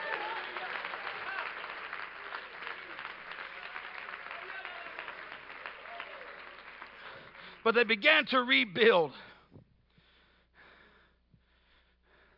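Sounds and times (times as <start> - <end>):
crowd clapping: 0.0 - 9.1
speech: 7.6 - 9.3.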